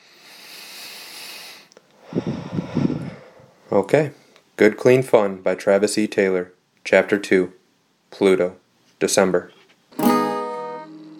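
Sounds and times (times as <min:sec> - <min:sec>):
person taking a deep breath: 0:00.0 - 0:04.4
speech: 0:02.2 - 0:02.6, 0:03.7 - 0:09.6.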